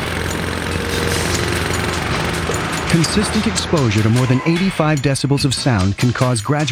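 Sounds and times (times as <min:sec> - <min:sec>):
loud power tool running: 0:00.0 - 0:04.7
speech: 0:03.0 - 0:06.6.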